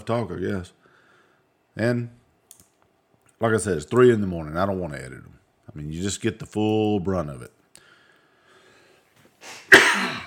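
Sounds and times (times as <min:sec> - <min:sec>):
speech: 0:00.0 - 0:00.8, 0:01.8 - 0:02.2, 0:03.4 - 0:07.6
person coughing after something went down the wrong windpipe: 0:09.5 - 0:10.2.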